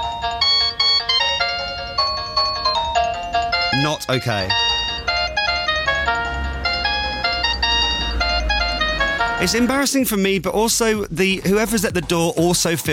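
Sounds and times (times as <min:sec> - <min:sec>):
novelty doorbell chime: 0:00.0 - 0:09.8
speech: 0:03.8 - 0:04.8, 0:09.4 - 0:12.9.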